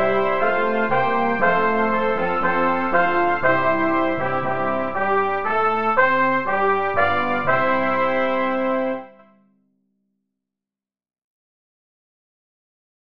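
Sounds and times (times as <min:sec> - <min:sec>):
brass playing a hymn: 0:00.0 - 0:09.3.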